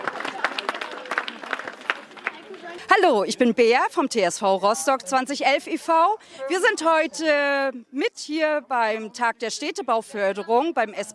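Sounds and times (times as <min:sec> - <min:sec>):
people at a neighbourhood community event clapping for volunteers: 0:00.0 - 0:03.0
crowd noise: 0:00.0 - 0:11.1
speech: 0:02.9 - 0:11.1.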